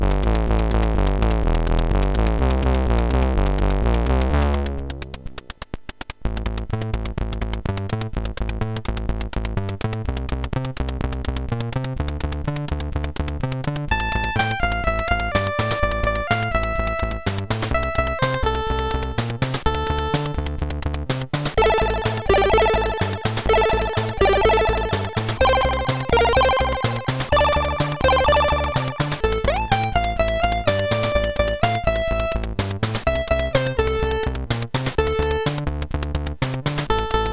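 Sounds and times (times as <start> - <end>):
chiptune bass music on a MOS6581R3 SID chip: 0.0 - 5.6, 6.2 - 37.3.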